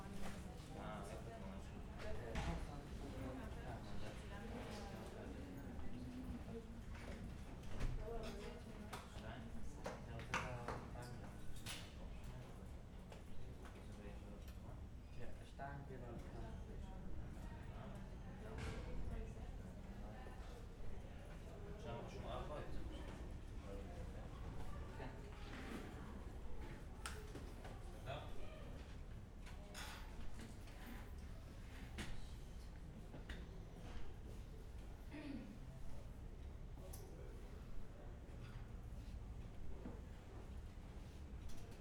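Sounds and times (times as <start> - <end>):
murmur of voices in a school corridor: 0.0 - 41.7.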